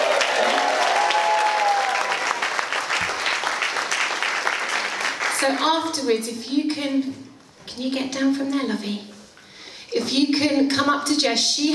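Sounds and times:
crowd cheering and clapping: 0.0 - 5.5
speech: 5.4 - 9.1, 9.9 - 11.7.

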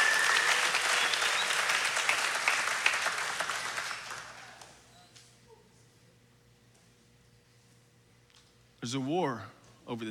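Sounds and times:
crowd applauding: 0.0 - 4.8
speech: 8.8 - 10.0.

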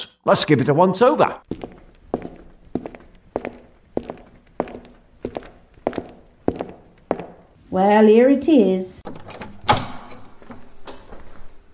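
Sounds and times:
speech: 0.2 - 1.7, 7.7 - 9.2
footsteps of someone walking around in a larder: 1.4 - 7.7.

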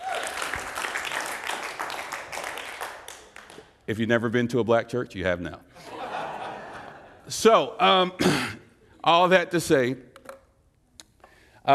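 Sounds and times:
audience applause: 0.0 - 3.7
speech: 3.9 - 5.9, 7.3 - 10.1
laughter: 5.8 - 7.3.

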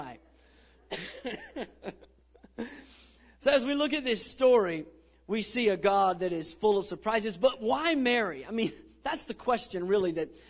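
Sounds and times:
person coughing: 0.9 - 3.0
speech: 1.2 - 1.8, 3.5 - 10.4.

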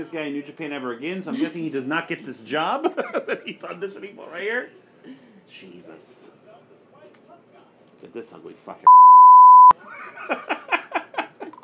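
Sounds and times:
speech: 0.0 - 6.4, 8.0 - 9.1, 10.1 - 10.8
censor bleep tone: 8.9 - 9.7.

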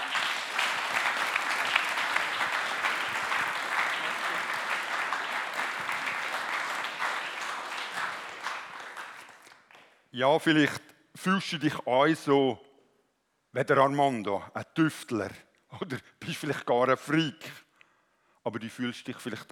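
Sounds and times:
laughter: 0.0 - 9.0
audience applause: 0.0 - 9.9
speech: 10.2 - 12.7, 13.5 - 17.6, 18.4 - 19.5.

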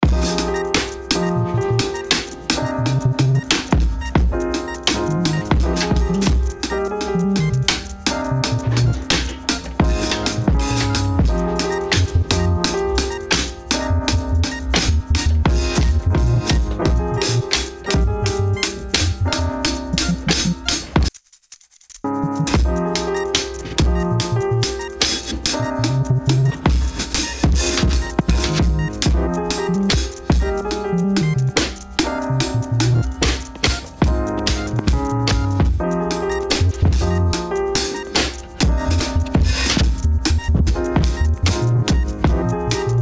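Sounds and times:
drums: 0.0 - 21.2, 22.5 - 43.0.

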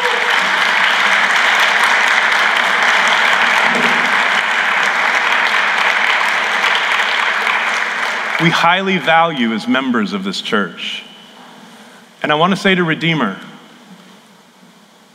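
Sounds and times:
audience clapping: 0.0 - 10.6
speech: 8.4 - 11.1, 12.2 - 13.5.

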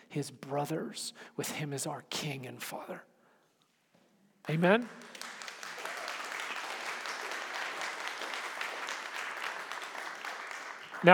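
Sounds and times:
speech: 0.1 - 3.1, 4.4 - 5.2, 11.0 - 11.1
audience clapping: 4.4 - 11.1.

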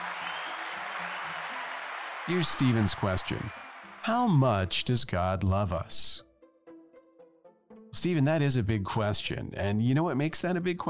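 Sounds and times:
audience applause: 0.0 - 4.4
speech: 2.3 - 6.3, 7.9 - 10.8.

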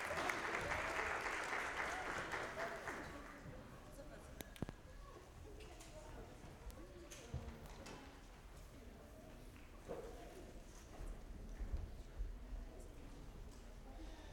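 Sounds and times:
church congregation applause for people leaving a morning service: 0.0 - 3.5
room murmur with voices: 0.0 - 14.3.

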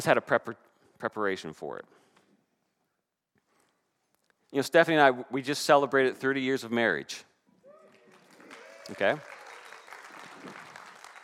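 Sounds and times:
speech: 0.0 - 2.0, 4.5 - 7.3, 8.9 - 9.4
audience clapping: 7.7 - 11.2.

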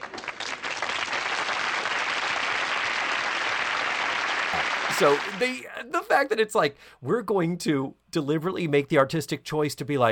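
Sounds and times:
canned sitcom applause clap track: 0.0 - 5.7
speech: 5.0 - 10.1.

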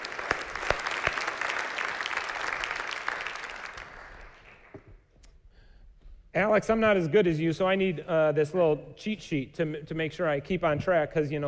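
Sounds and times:
congregation applauding testimony givers at a morning fellowship service: 0.0 - 5.0
speech: 6.4 - 11.4.

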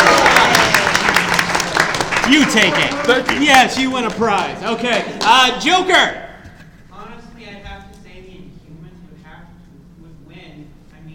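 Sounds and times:
audience clapping: 0.0 - 5.9
speech: 2.3 - 6.2.

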